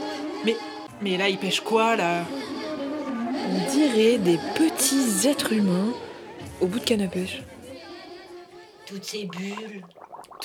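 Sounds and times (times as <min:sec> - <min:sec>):
speech: 0:00.4 - 0:02.6, 0:03.4 - 0:07.5, 0:08.9 - 0:10.0
underwater bubbles: 0:09.0 - 0:10.4.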